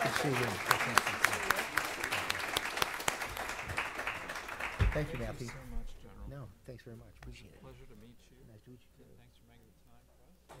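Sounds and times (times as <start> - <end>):
audience applause: 0.0 - 5.7
speech: 0.2 - 1.2, 5.0 - 5.7, 6.4 - 9.4.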